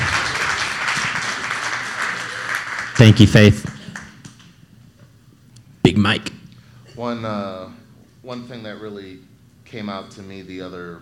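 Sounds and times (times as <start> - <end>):
audience applause: 0.0 - 4.2
speech: 3.0 - 3.8, 6.0 - 6.3, 7.0 - 10.9.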